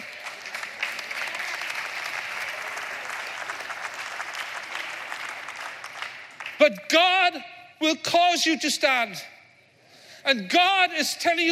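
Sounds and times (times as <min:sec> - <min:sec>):
crowd clapping: 0:00.0 - 0:06.8
speech: 0:06.6 - 0:09.3, 0:10.2 - 0:11.5.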